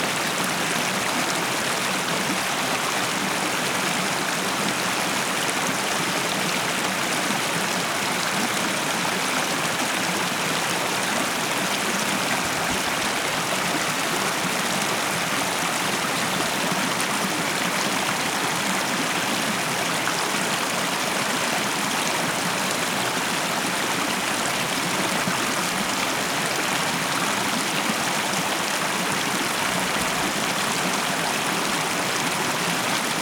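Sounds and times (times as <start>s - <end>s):
stream flowing: 0.0s - 33.2s.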